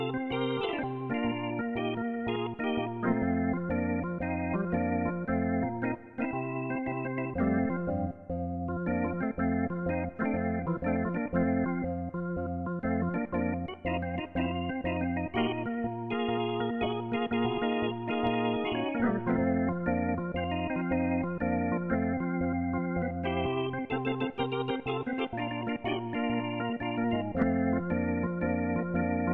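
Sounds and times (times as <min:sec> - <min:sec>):
Hammond B3 organ chords: 0:00.0 - 0:29.3.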